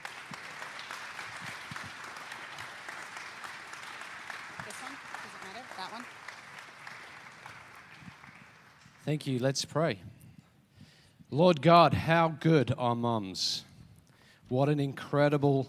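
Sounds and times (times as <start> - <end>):
audience clapping: 0.0 - 9.6
speech: 9.1 - 10.1, 11.3 - 13.7, 14.5 - 15.6.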